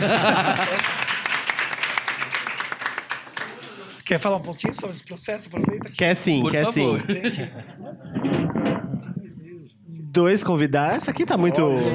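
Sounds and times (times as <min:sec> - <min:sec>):
speech: 0:00.0 - 0:00.7, 0:04.1 - 0:08.4, 0:10.2 - 0:11.9
laughter: 0:00.0 - 0:02.6, 0:06.5 - 0:08.7
audience clapping: 0:00.0 - 0:04.4.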